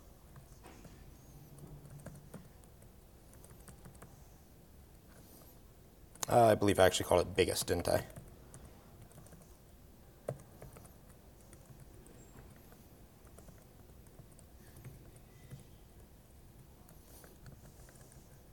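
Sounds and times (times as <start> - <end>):
typing on a computer keyboard: 0.3 - 4.4, 7.9 - 18.5
speech: 6.3 - 8.2.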